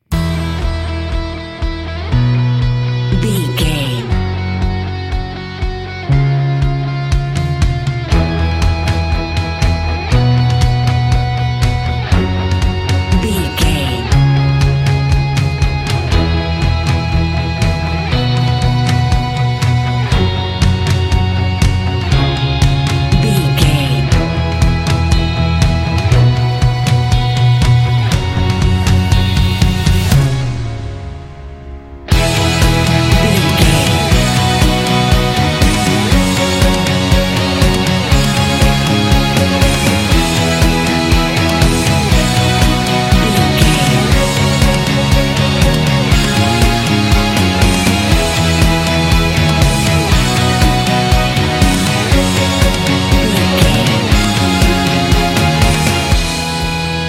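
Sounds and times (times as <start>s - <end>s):
orchestral rock adventure and sports inspiration music: 0.0s - 57.0s.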